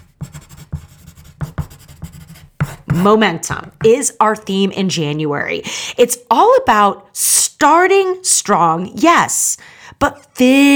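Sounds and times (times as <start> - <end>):
scratchy pen strokes writing by hand: 0.0 - 4.0
speech: 3.0 - 10.7.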